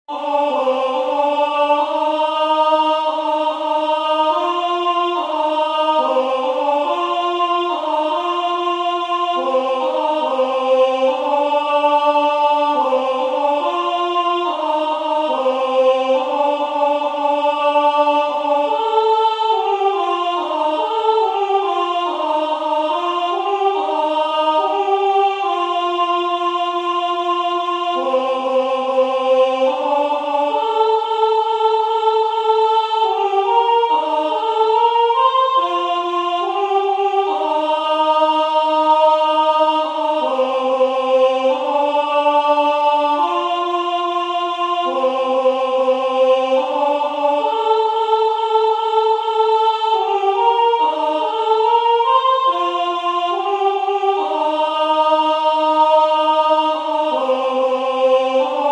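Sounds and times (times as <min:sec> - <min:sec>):
alto voice singing: 0:00.0 - 0:58.6.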